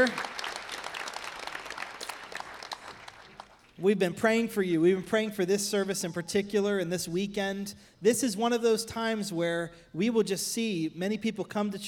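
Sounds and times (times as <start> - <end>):
speech: 0.0 - 0.3, 3.8 - 11.8
church congregation applauding guests at a Christmas service: 0.0 - 3.8.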